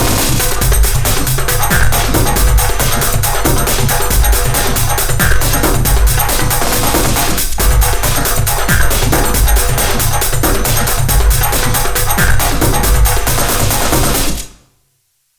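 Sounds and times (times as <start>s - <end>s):
drums test: 0.0s - 14.4s.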